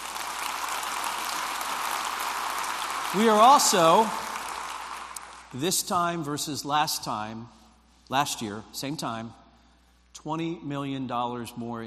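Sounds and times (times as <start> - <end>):
audience applause: 0.0 - 5.5
speech: 3.1 - 4.2, 5.5 - 9.4, 10.2 - 11.8.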